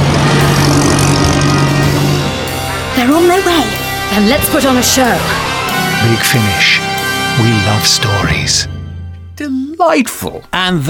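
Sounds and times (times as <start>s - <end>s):
roaring Bentley car engine: 0.0s - 7.4s
speech: 3.4s - 8.8s, 9.4s - 10.8s.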